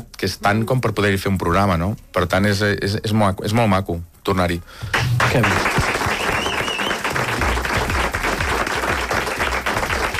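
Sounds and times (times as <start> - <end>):
speech: 0.2 - 5.9
studio audience applause: 4.9 - 10.1
faint whistle-like tone: 6.2 - 7.0.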